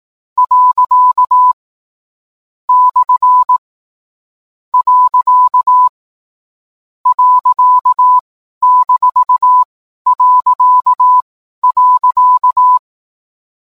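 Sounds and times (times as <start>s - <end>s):
Morse code tones: 0.4s - 1.6s, 2.7s - 3.6s, 4.8s - 5.9s, 7.1s - 12.8s.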